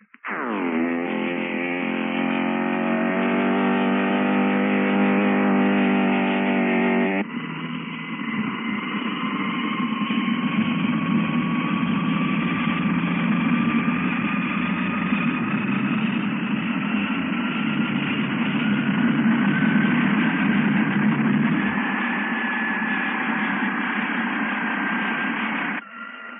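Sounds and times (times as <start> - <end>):
Messerschmitt 262 twin jet engines starting up: 0.3 - 26.3.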